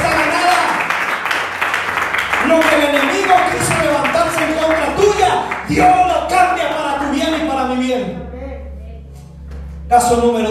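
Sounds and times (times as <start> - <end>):
audience applauding: 0.0 - 7.6
speech: 9.9 - 10.4.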